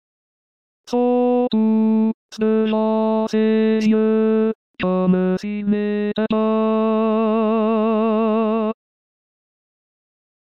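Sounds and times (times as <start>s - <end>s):
tenor singing: 0.9s - 8.8s.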